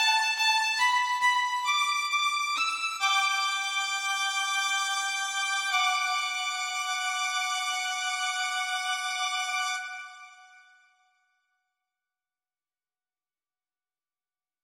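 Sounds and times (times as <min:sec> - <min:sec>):
intermezzo larghetto: 0:00.0 - 0:10.6.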